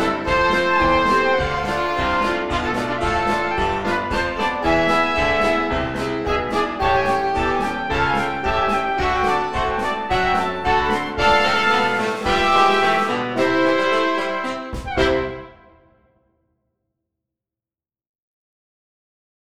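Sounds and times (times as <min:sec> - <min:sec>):
blues music: 0:00.0 - 0:15.8.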